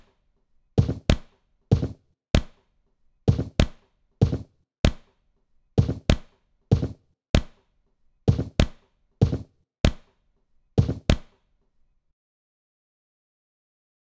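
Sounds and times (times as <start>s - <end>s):
body percussion: 0.8s - 2.6s, 3.3s - 5.1s, 5.8s - 7.6s, 8.3s - 10.1s, 10.8s - 11.3s.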